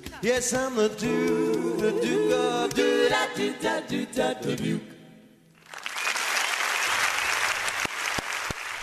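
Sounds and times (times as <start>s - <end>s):
speech: 0.2s - 4.9s
audience applause: 5.6s - 8.8s.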